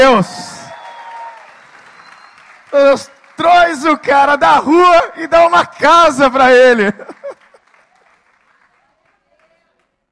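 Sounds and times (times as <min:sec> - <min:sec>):
speech: 0:00.0 - 0:00.5, 0:02.7 - 0:07.2
audience applause: 0:00.7 - 0:04.1, 0:06.7 - 0:09.9
laughter: 0:06.8 - 0:07.7.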